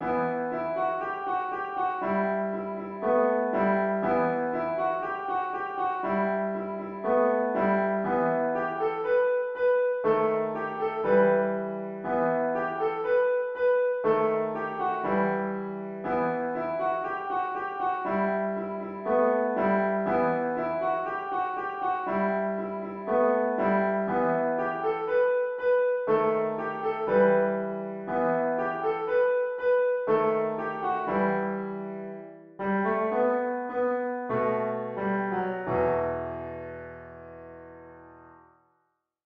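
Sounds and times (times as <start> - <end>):
piano melody: 0.0 - 38.6.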